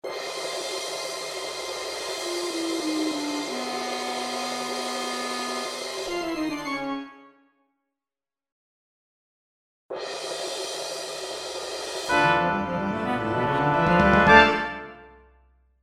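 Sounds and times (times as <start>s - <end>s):
orchestra: 2.1s - 7.3s, 12.1s - 15.1s.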